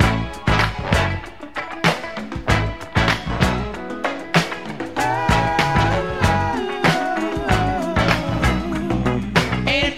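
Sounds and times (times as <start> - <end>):
phonk music loop: 0.0 - 9.9.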